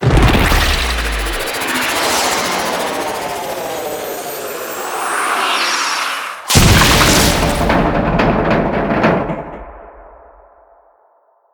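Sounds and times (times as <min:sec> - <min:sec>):
crash: 0:00.0 - 0:11.0.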